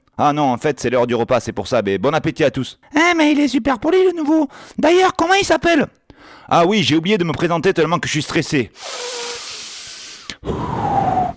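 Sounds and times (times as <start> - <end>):
speech: 0.2 - 9.3
heavy breathing: 4.5 - 4.8, 6.1 - 6.5, 8.8 - 11.3.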